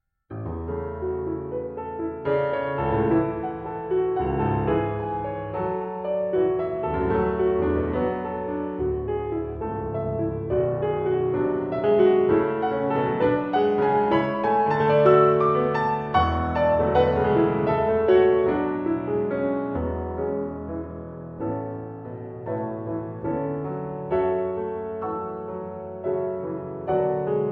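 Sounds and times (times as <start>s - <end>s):
piano piece: 0.3s - 27.4s.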